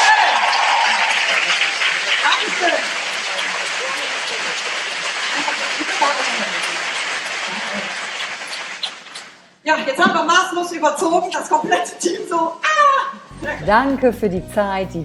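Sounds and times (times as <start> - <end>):
audience applause: 0.0 - 9.4
speech: 9.7 - 15.0.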